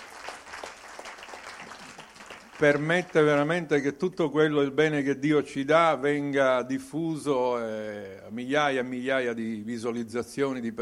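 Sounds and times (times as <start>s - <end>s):
audience applause at a church gathering: 0.0s - 3.3s
speech: 2.6s - 10.8s.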